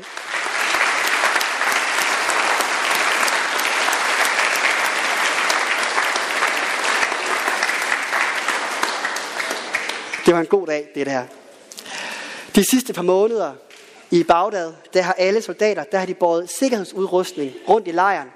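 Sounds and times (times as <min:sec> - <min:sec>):
audience clapping: 0:00.0 - 0:10.7
speech: 0:10.3 - 0:11.4, 0:12.6 - 0:18.3.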